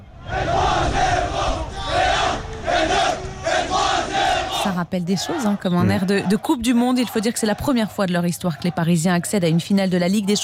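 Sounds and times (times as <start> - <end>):
football fans chanting: 0.0 - 10.4
speech: 4.8 - 10.4.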